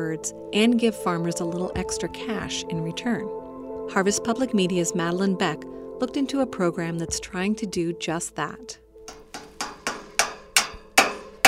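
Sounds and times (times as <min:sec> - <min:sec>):
speech: 0:00.0 - 0:09.2
hammering while assembling an antenna tower: 0:09.1 - 0:11.4.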